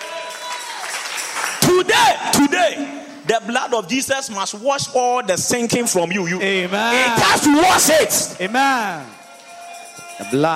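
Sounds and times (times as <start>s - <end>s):
audience clapping: 0.0s - 1.9s
speech: 1.8s - 9.2s, 10.2s - 10.5s.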